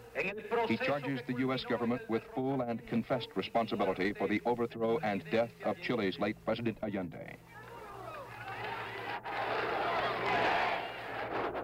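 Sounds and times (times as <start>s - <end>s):
speech: 0.2s - 7.6s
crowd chanting: 7.7s - 11.6s.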